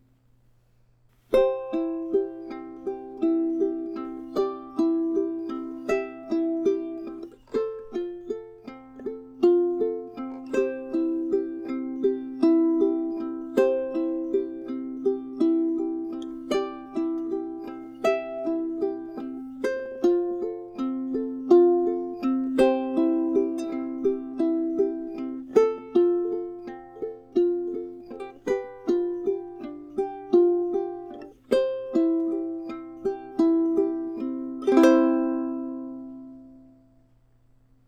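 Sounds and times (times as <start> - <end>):
ukulele playing: 1.3 - 37.0.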